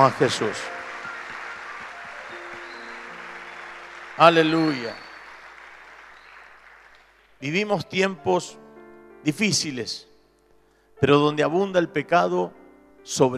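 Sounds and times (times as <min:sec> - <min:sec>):
speech: 0:00.0 - 0:00.8, 0:04.2 - 0:05.0, 0:07.4 - 0:08.6, 0:09.2 - 0:10.1, 0:11.0 - 0:13.3
audience applauding: 0:00.0 - 0:07.7.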